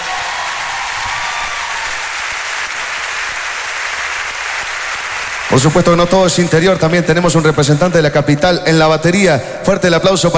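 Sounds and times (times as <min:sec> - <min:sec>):
audience applauding for a musician: 0:00.0 - 0:07.7
speech: 0:05.5 - 0:10.3.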